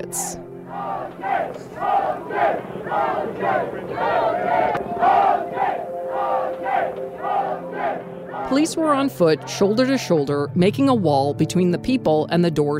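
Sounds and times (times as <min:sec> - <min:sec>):
speech: 0:00.0 - 0:05.2, 0:08.5 - 0:12.7
large crowd cheering and chanting outside a courthouse: 0:00.1 - 0:10.0.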